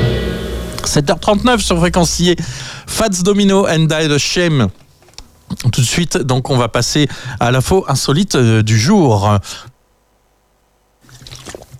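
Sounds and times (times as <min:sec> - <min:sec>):
speech: 0:00.8 - 0:04.8, 0:05.5 - 0:09.7
person sipping water: 0:11.0 - 0:11.7.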